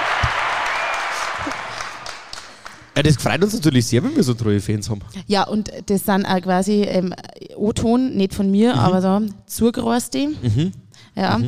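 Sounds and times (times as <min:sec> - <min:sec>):
audience applause: 0:00.0 - 0:03.4
speech: 0:03.0 - 0:11.4.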